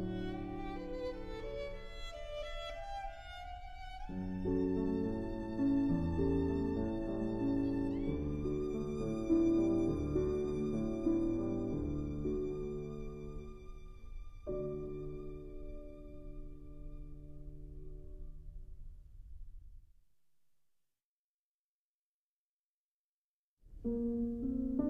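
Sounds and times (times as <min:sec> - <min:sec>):
violin: 0:00.0 - 0:18.1
piano: 0:00.0 - 0:19.9, 0:23.7 - 0:24.8.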